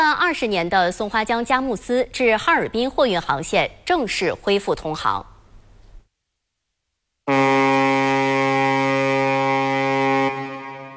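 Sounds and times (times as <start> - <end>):
speech: 0.1 - 5.3
long ship horn of departing barge Longtui 611: 7.3 - 10.9.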